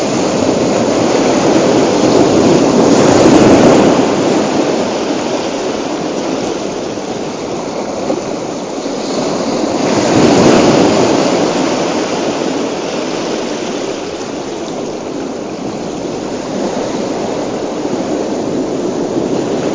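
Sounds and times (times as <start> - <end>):
relaxing ocean sounds: 0.0 - 19.7.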